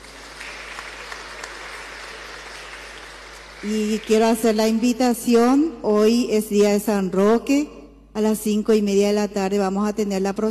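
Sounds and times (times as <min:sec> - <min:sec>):
audience applause: 0:00.0 - 0:04.4
speech: 0:03.6 - 0:10.4.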